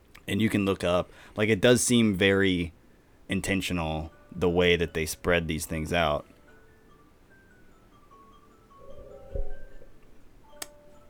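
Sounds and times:
speech: 0.3 - 6.3
phone alarm electronic tones: 7.7 - 10.0.

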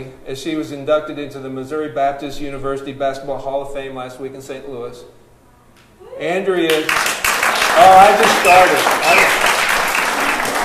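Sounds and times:
speech: 0.0 - 5.2, 6.2 - 7.2, 7.8 - 9.4
crowd applauding: 6.7 - 10.6.

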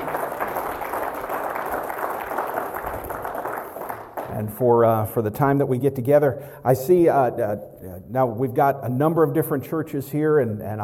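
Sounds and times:
audience applause: 0.0 - 4.3
speech: 4.4 - 10.8.

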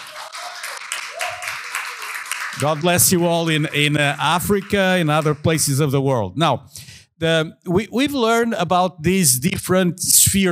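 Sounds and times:
church congregation clapping during a Sunday service: 0.0 - 6.0
speech: 2.6 - 10.5.

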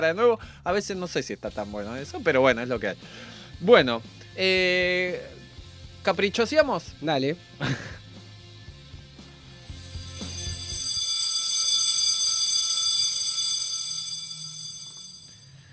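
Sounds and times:
speech: 0.0 - 5.4, 6.0 - 8.0
laughter: 7.6 - 8.0
school bell ringing: 9.7 - 15.6.

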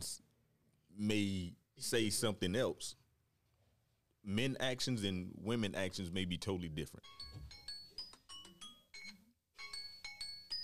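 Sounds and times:
speech: 1.0 - 3.0, 4.2 - 7.6
phone timer ringtone: 7.0 - 10.6.

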